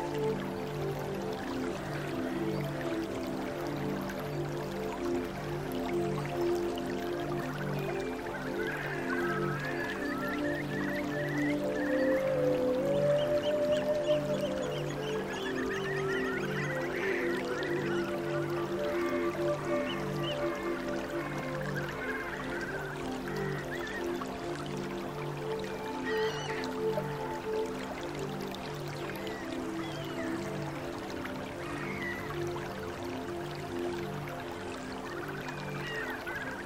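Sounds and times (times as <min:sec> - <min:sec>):
soft flute melody: 0:00.0 - 0:36.6
gentle rainforest ambience: 0:06.0 - 0:36.6.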